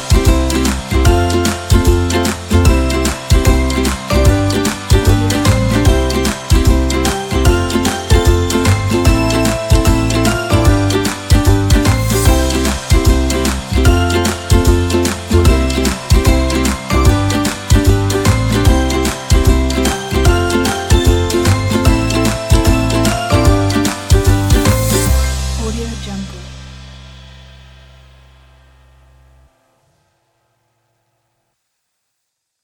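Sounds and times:
happy children: 0.0 - 25.5.

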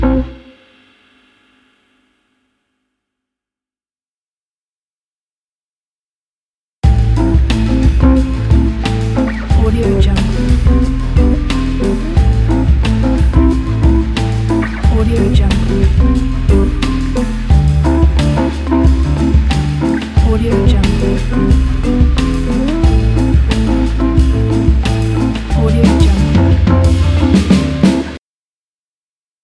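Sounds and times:
jazz lounge logo jingle: 6.9 - 28.2.

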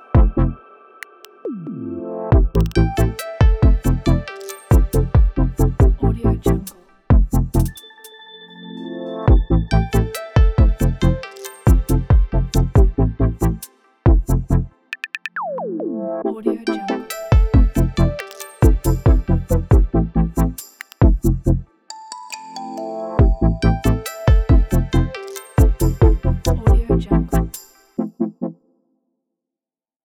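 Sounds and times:
abstract beat: 0.1 - 1.4, 2.3 - 7.8, 9.3 - 15.6, 17.1 - 21.5, 23.2 - 27.6.

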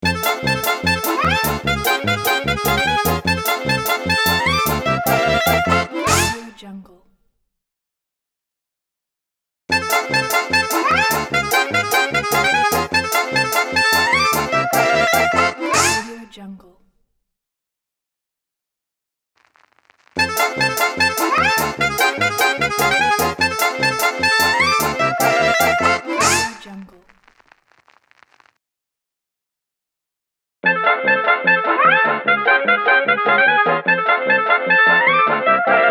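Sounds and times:
polka party logo music: 0.0 - 6.6, 9.7 - 16.3, 20.2 - 26.7, 30.7 - 35.8.

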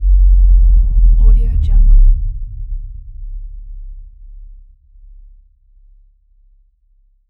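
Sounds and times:
bass drop: 0.0 - 5.2.

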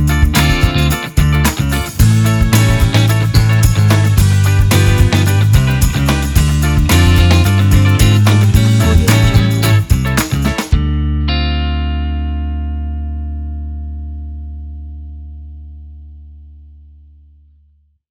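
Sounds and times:
funk music: 0.0 - 13.5.

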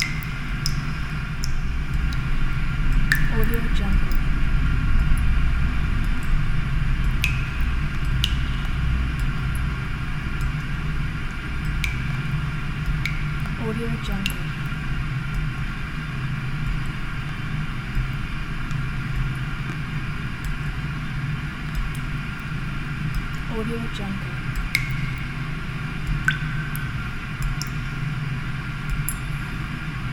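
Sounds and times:
underground ambience: 0.0 - 30.1.

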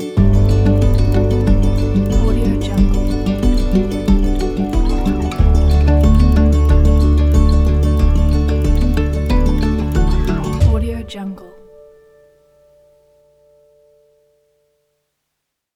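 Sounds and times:
inspiring indie folk music: 0.0 - 12.0.

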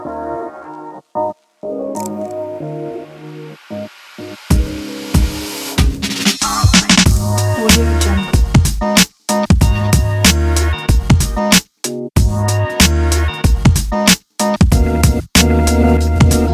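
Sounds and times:
hip hop beat: 4.5 - 16.5.

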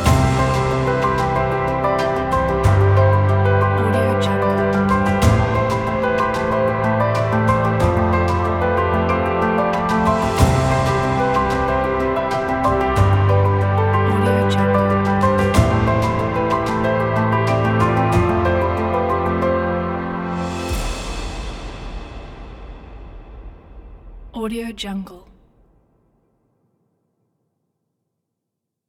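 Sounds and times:
inspiring piano music: 0.0 - 21.8.

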